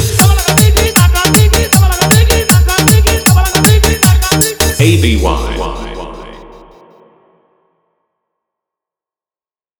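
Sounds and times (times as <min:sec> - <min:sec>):
trance mix: 0:00.2 - 0:07.3.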